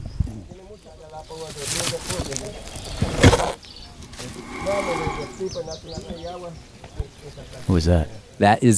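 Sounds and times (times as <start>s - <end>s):
speech: 1.2s - 3.2s, 4.7s - 8.7s
giant tortoise breathing: 4.0s - 5.5s.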